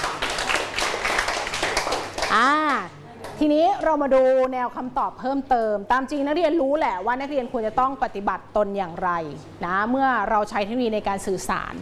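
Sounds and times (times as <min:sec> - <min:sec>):
students clapping hands: 0:00.0 - 0:02.8
speech: 0:02.3 - 0:11.8.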